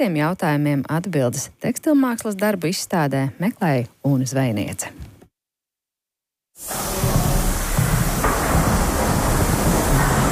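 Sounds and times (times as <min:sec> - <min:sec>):
speech: 0:00.0 - 0:05.1, 0:06.6 - 0:07.0
garment steamer hissing in Latvian Academy of Art exhibition room: 0:06.6 - 0:10.3.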